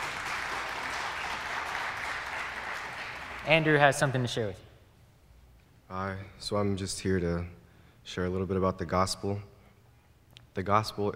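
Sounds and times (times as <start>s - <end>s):
audience clapping: 0.0s - 4.4s
speech: 3.4s - 4.7s, 5.9s - 9.5s, 10.6s - 11.1s.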